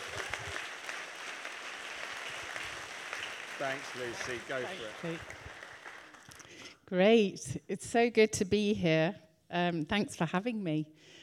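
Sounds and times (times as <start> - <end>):
audience clapping at a church gathering: 0.0 - 6.6
speech: 3.6 - 5.5, 6.9 - 11.2.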